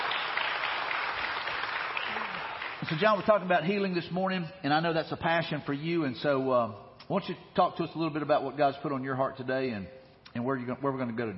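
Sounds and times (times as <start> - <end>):
church congregation applauding to welcome a pastor: 0.0 - 3.6
speech: 2.9 - 11.3.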